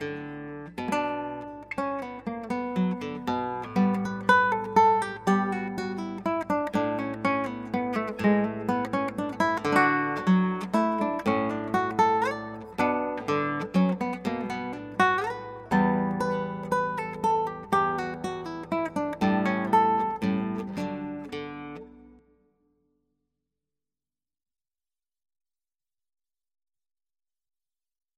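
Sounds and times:
classical acoustic guitar waltz: 0:00.0 - 0:22.4.

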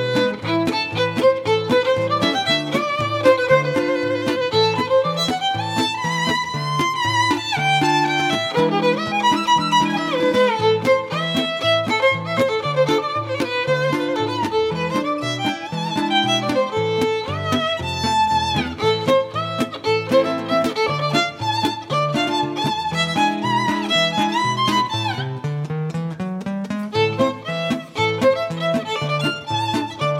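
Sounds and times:
jazz guitar: 0:00.0 - 0:30.1
jazz violin: 0:00.0 - 0:30.1.

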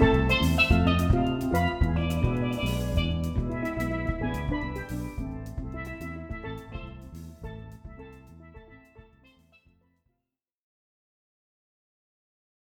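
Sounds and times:
steel drum band playing a piece in A minor: 0:00.0 - 0:09.2.

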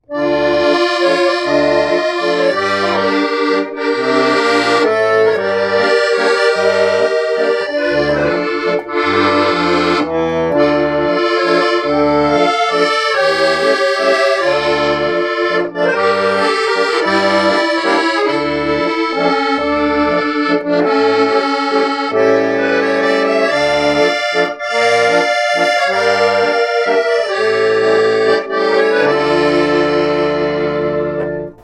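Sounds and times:
accordion playing a waltz: 0:00.0 - 0:31.6.

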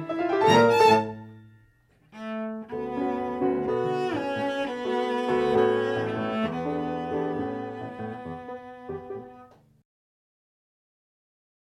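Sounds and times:
classical trio playing: 0:00.0 - 0:01.4, 0:02.1 - 0:09.7.

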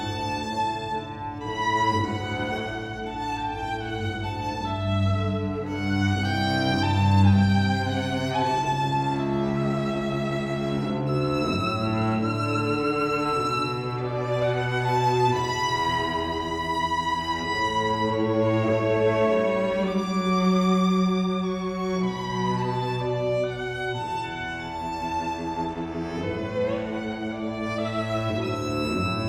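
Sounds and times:
classical cello: 0:00.0 - 0:29.2
classical violin: 0:00.0 - 0:29.2.

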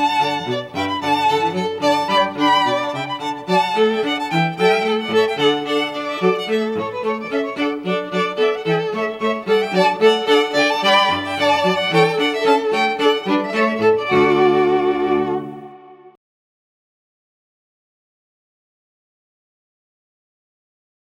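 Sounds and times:
classical music on strings: 0:00.0 - 0:16.2.

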